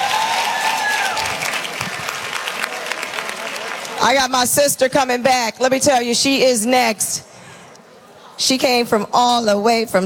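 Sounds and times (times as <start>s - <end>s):
audience applause: 0.0s - 4.0s
speech: 4.0s - 7.3s, 8.4s - 10.0s.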